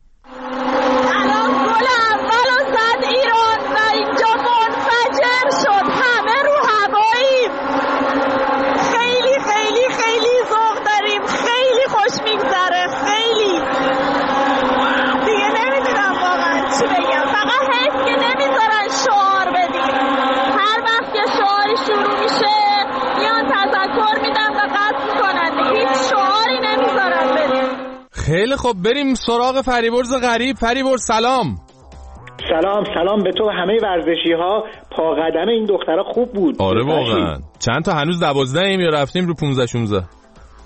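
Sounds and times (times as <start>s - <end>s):
stadium crowd after first goal: 0.3s - 28.5s
speech: 28.6s - 31.6s, 32.5s - 40.2s.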